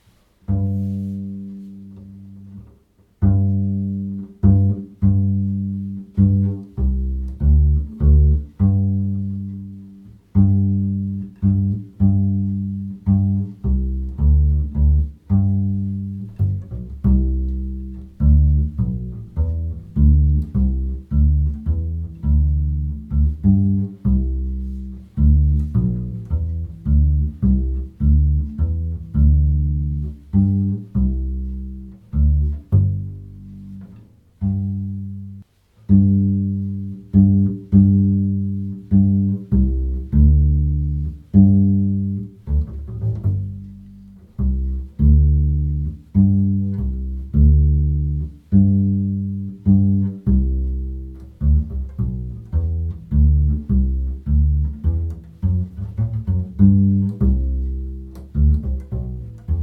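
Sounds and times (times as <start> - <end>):
bass playing a polska: 0.0 - 59.6.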